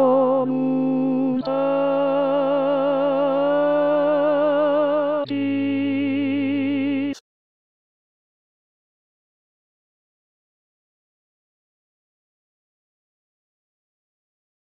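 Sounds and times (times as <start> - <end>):
tenor singing from a Christmas oratorio: 0.0 - 7.2.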